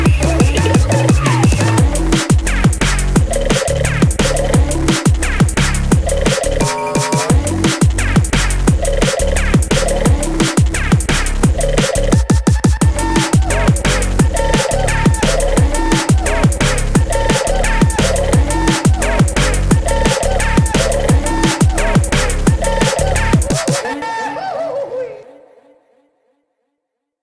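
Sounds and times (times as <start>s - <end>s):
goofy beat: 0.0s - 23.9s.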